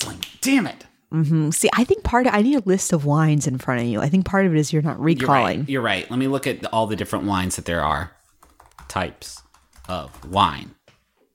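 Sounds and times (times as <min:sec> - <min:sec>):
speech: 0:00.4 - 0:08.2, 0:08.9 - 0:10.8
voiced sounds: 0:04.9 - 0:05.8
typing on a computer keyboard to search Google: 0:08.4 - 0:10.7.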